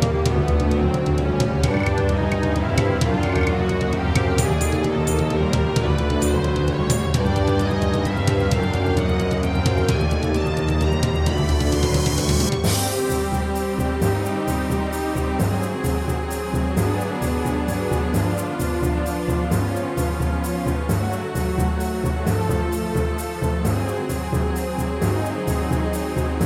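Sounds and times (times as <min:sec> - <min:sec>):
wavetable synthesizer music in XG mode: 0:00.0 - 0:26.4.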